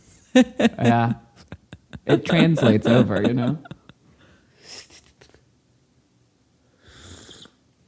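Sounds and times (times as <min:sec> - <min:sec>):
speech: 0:00.4 - 0:01.2, 0:02.0 - 0:03.8
laughter: 0:00.4 - 0:04.0
loud slurp of tea: 0:07.0 - 0:07.6.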